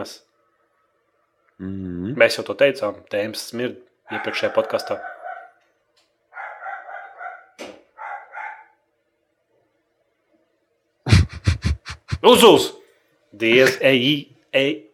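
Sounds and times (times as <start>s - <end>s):
speech: 0.0s - 0.3s, 1.6s - 5.1s, 12.2s - 12.8s, 13.4s - 14.8s
dog barking: 4.1s - 5.6s, 6.3s - 8.8s
laughter: 11.1s - 12.4s.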